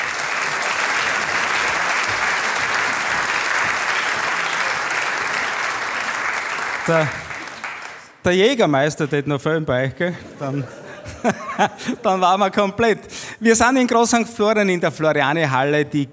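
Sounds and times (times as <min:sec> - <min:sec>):
laughter: 0:00.0 - 0:06.2, 0:06.8 - 0:07.6, 0:09.7 - 0:13.3
audience applause in a hall: 0:00.0 - 0:08.2
speech: 0:06.9 - 0:07.2, 0:08.2 - 0:16.1.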